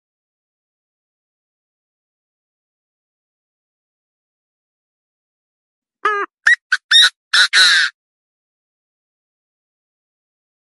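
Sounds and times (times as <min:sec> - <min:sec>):
partridge calling: 0:06.0 - 0:07.9.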